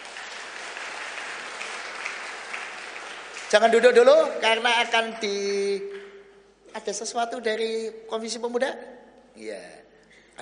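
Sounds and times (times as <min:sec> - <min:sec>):
congregation clapping to welcome new university students at a church service: 0:00.0 - 0:06.2
speech: 0:03.5 - 0:06.0, 0:06.8 - 0:09.8.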